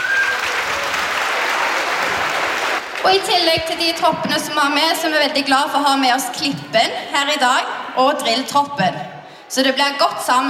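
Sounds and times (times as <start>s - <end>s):
audience applause at a Christmas show: 0.0s - 3.1s
speech: 3.0s - 10.4s.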